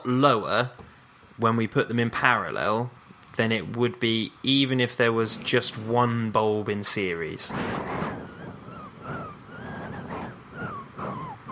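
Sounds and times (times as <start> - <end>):
speech: 0.0 - 0.8, 1.4 - 8.1
soft steady breathy hiss: 2.3 - 11.4
whistling through the nose: 7.5 - 11.4.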